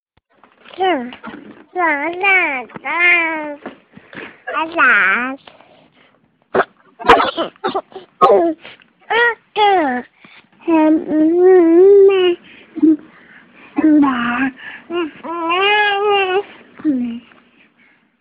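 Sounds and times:
baby talk: 0.8s - 3.7s, 4.5s - 5.4s, 7.0s - 13.0s, 13.8s - 17.3s.

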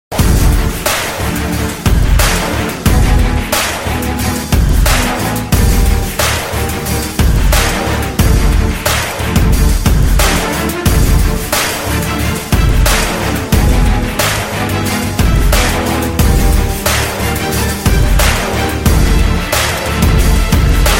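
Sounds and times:
instrumental music: 0.1s - 20.9s.

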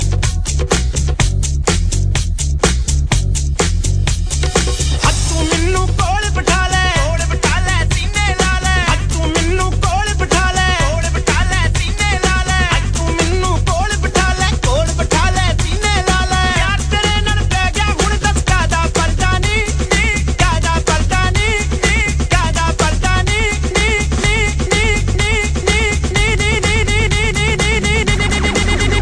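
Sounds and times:
Punjabi DJ mix: 0.0s - 29.0s.

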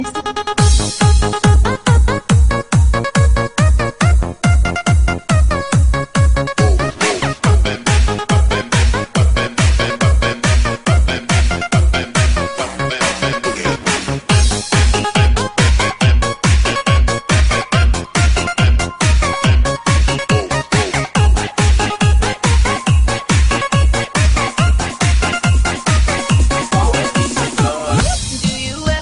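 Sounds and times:
disco music mix: 0.0s - 29.0s.

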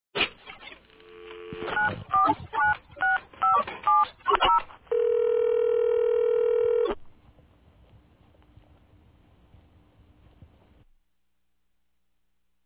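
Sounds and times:
phone dialing: 1.3s - 7.0s.

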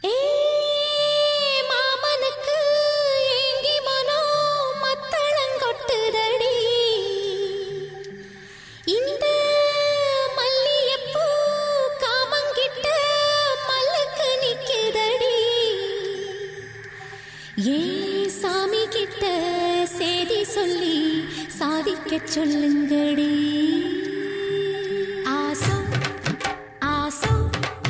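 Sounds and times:
Tamil gana song: 0.0s - 27.8s.

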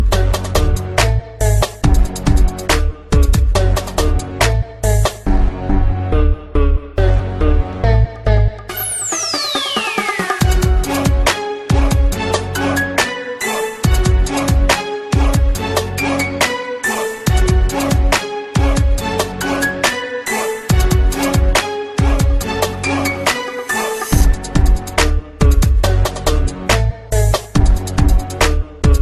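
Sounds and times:
gangsta beat: 0.0s - 5.6s, 7.0s - 29.0s.

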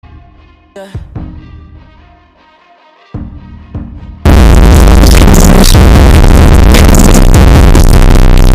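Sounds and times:
loud distorted sad audio: 4.3s - 8.5s.

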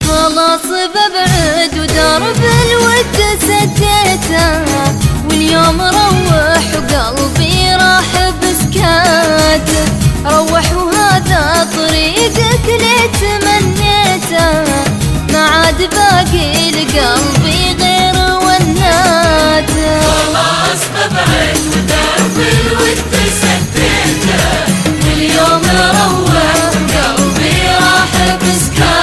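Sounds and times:
sad Arabic song: 0.0s - 29.0s.

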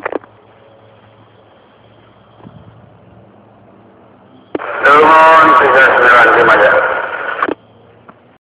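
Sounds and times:
police walkie-talkie radio chatter: 4.5s - 7.6s.

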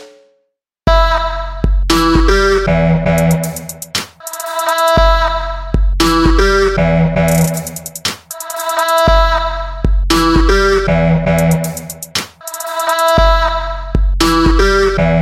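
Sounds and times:
music beat: 0.9s - 15.2s.

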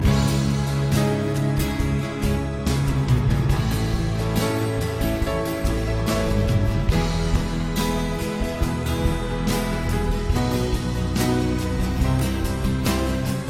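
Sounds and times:
instrumental music: 0.0s - 13.4s.

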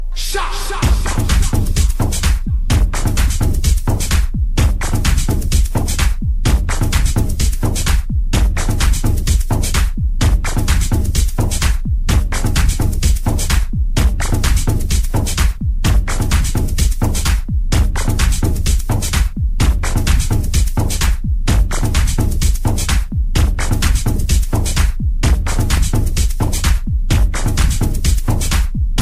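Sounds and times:
dark beat: 0.0s - 29.0s.

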